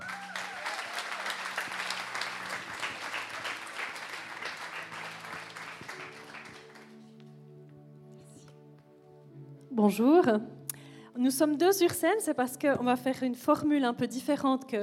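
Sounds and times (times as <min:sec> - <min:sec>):
audience applause: 0:00.0 - 0:07.0
speech: 0:09.8 - 0:10.6, 0:11.2 - 0:14.8.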